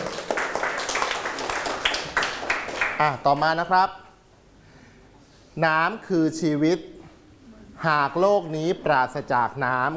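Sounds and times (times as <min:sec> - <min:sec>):
classroom applause: 0:00.0 - 0:03.2
speech: 0:03.0 - 0:04.0, 0:05.6 - 0:06.9, 0:07.8 - 0:09.9.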